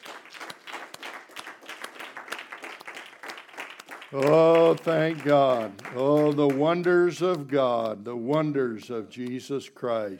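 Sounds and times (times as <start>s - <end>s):
crowd applauding in praise: 0.0s - 8.5s
speech: 4.1s - 10.1s.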